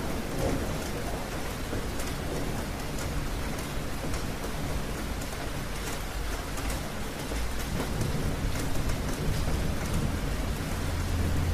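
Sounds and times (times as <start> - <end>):
rain falling on a roof: 0.0 - 11.5.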